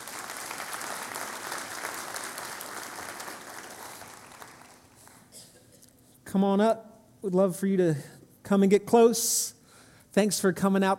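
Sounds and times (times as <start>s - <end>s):
audience applause: 0.0s - 5.3s
speech: 6.3s - 10.9s.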